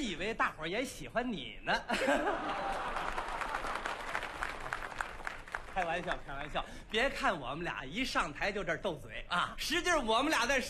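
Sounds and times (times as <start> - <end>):
speech: 0.1 - 3.2, 5.8 - 10.6
laughter: 1.8 - 4.1
audience applause: 2.4 - 6.6.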